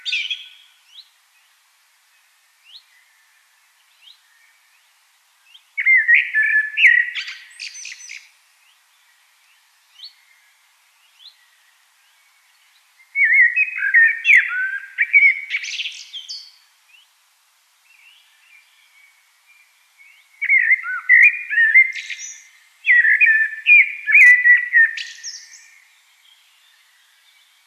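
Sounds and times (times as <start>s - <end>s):
common blackbird singing: 0.0s - 1.1s, 5.5s - 8.3s, 13.0s - 17.0s, 17.9s - 27.5s.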